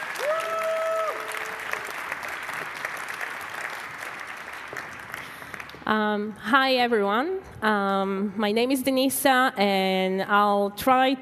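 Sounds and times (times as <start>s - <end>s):
audience applause: 0.0s - 5.8s
speech: 5.9s - 11.2s.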